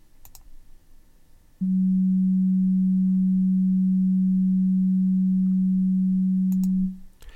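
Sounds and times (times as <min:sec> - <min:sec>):
faint clicks: 0:00.2 - 0:00.5, 0:06.5 - 0:07.3
193 hertz low test tone: 0:01.6 - 0:07.1.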